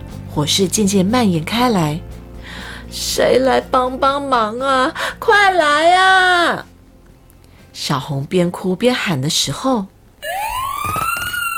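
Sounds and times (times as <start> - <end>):
speech: 0.4 - 2.1, 2.9 - 6.7, 7.8 - 9.9
fire engine siren: 10.2 - 11.5.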